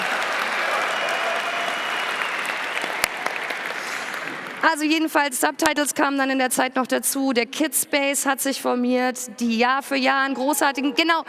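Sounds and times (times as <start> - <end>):
audience applause: 0.0 - 4.6
speech: 4.6 - 11.2.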